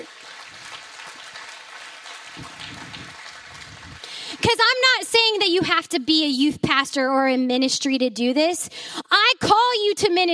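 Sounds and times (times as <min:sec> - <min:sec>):
crowd applause: 0:00.0 - 0:04.8
speech: 0:04.4 - 0:10.3.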